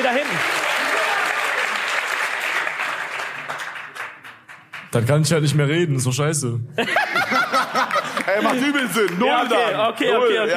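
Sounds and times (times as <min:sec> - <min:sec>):
applause: 0:00.0 - 0:05.3, 0:07.8 - 0:09.5
speech: 0:04.9 - 0:10.5
laughter: 0:06.8 - 0:10.5.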